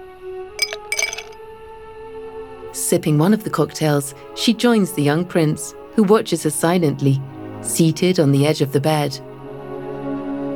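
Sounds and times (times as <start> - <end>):
martini glasses clinking: 0.6 - 1.4
speech: 2.8 - 9.3.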